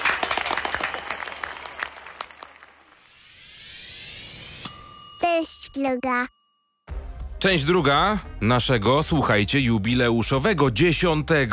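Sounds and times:
applause: 0:00.0 - 0:03.2
smooth rising whoosh: 0:02.9 - 0:04.7
speech: 0:05.4 - 0:06.4, 0:07.4 - 0:11.5.

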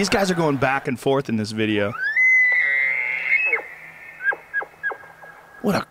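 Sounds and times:
speech: 0:00.0 - 0:02.1, 0:05.6 - 0:05.8
low steady hum: 0:00.0 - 0:05.8
elk bugling: 0:01.8 - 0:05.7.

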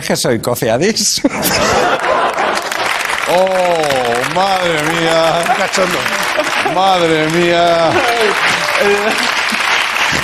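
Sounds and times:
speech: 0:00.1 - 0:02.1, 0:03.3 - 0:09.5
laughter: 0:01.2 - 0:10.2
mild audience booing: 0:03.3 - 0:09.6.

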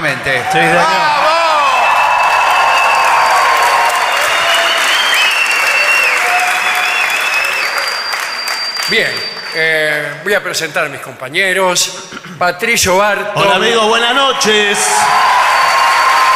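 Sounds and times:
speech: 0:00.0 - 0:01.3, 0:08.9 - 0:15.5
audience shouting and whooping: 0:00.4 - 0:08.1, 0:14.8 - 0:16.3
audience applause: 0:00.4 - 0:10.0, 0:14.8 - 0:16.3.

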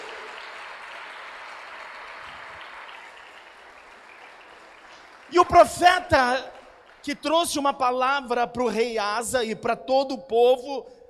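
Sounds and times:
audience applauding: 0:00.0 - 0:07.8
speech: 0:05.3 - 0:11.0.

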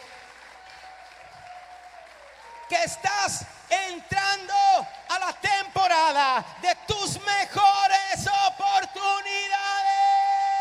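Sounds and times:
audience applause: 0:00.0 - 0:07.2
speech: 0:02.7 - 0:09.6.

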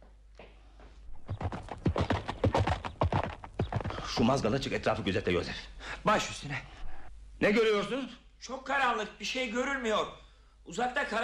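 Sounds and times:
horse galloping away, radio drama sound effect: 0:01.1 - 0:05.1
speech: 0:04.2 - 0:06.8, 0:07.4 - 0:11.2.

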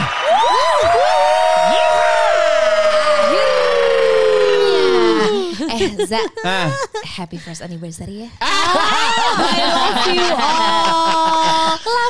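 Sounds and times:
applause: 0:00.0 - 0:03.9
laughter: 0:04.6 - 0:06.9, 0:08.4 - 0:12.0
speech: 0:05.8 - 0:12.0.

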